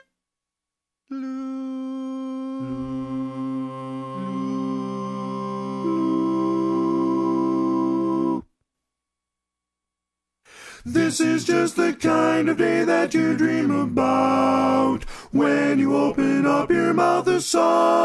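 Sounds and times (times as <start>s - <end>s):
tenor singing: 1.1s - 8.5s, 10.7s - 18.0s.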